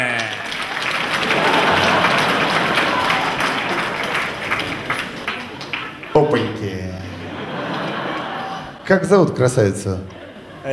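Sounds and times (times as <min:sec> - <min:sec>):
audience applause: 0:00.0 - 0:08.8
laughter: 0:00.2 - 0:10.7
speech: 0:08.9 - 0:10.7.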